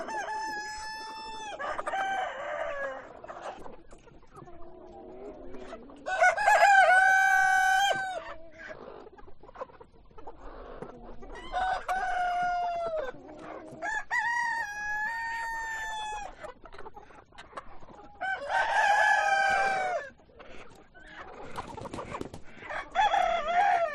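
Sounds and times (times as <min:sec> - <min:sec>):
rooster crowing: 0:00.0 - 0:03.1, 0:06.1 - 0:08.2, 0:11.5 - 0:13.1, 0:18.2 - 0:20.1, 0:22.7 - 0:23.9
hens clucking: 0:00.0 - 0:23.9.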